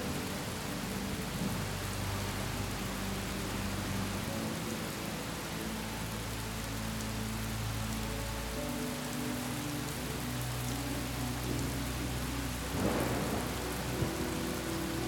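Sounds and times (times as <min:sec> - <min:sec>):
soft sustained low tones: 0:00.0 - 0:15.0
storm rain hissing: 0:00.0 - 0:15.0
low rumble of thunder: 0:12.6 - 0:15.0.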